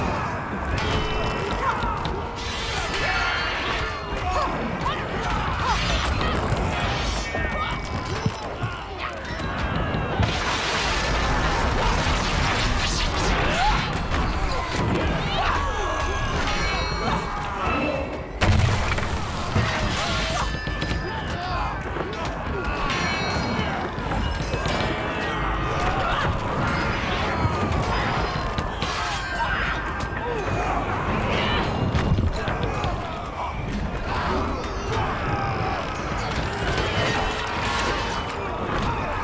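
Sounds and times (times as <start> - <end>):
battle ambience at the docks: 0.0 - 39.2.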